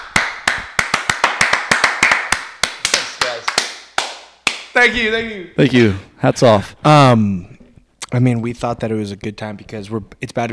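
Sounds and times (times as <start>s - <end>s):
hands clapping: 0.0s - 5.0s
speech: 4.8s - 10.5s.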